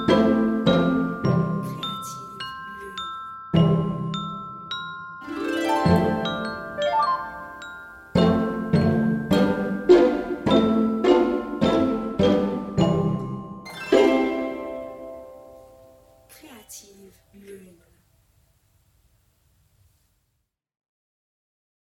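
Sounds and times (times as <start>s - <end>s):
pizzicato small bells: 0.0s - 16.3s.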